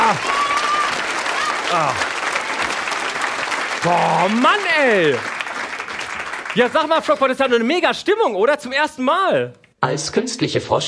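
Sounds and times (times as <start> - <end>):
cheers: 0.0 - 5.5
audience applause: 0.0 - 7.9
speech: 0.1 - 0.4, 1.7 - 2.1, 3.8 - 5.3, 6.6 - 10.8.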